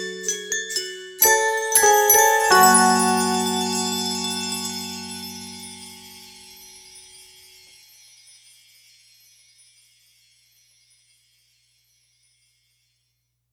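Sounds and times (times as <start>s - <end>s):
holiday bells ringing: 1.2s - 7.0s.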